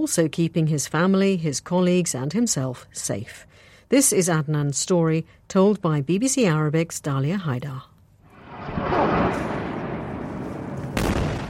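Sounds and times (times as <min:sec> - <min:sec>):
speech: 0:00.0 - 0:07.9
bombing blasts and rumble in Jabalia, northern Gaza: 0:08.3 - 0:11.4.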